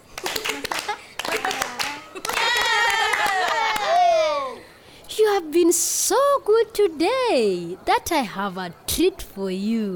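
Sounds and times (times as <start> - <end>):
group clapping: 0.0 - 4.1
speech: 5.4 - 9.9.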